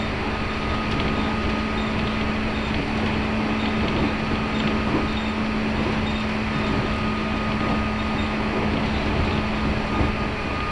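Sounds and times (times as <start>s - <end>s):
Chuo East Line local train wheels and running gear rumbling: 0.0s - 10.6s.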